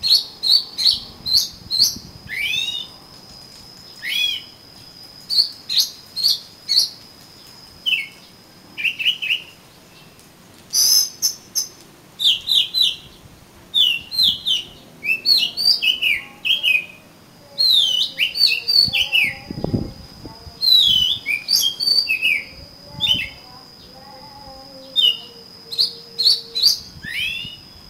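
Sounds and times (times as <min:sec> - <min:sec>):
Oriental magpie-robin song: 0:00.0 - 0:03.0, 0:03.8 - 0:04.6, 0:07.8 - 0:10.1, 0:10.7 - 0:27.8.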